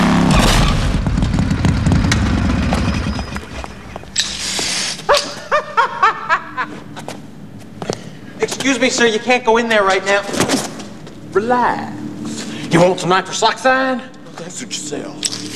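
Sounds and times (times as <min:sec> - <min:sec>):
motorcycle crashing into a wall: 0:00.1 - 0:03.6
laughter: 0:05.1 - 0:07.0
speech: 0:08.7 - 0:10.6, 0:11.4 - 0:12.0, 0:12.7 - 0:15.5.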